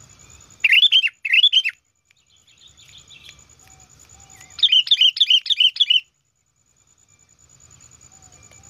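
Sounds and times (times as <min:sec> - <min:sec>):
sooty-headed bulbul giving chirpy whistled phrases and sharp notes: 0:00.2 - 0:06.2.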